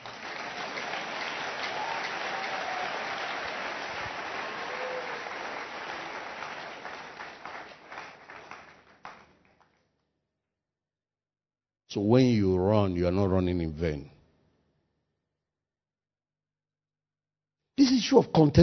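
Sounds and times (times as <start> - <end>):
audience applause: 0.0 - 9.8
speech: 11.9 - 14.2, 18.1 - 18.6.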